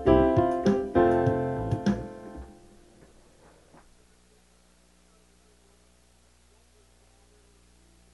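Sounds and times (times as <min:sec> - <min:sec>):
noise music: 0:00.0 - 0:06.4.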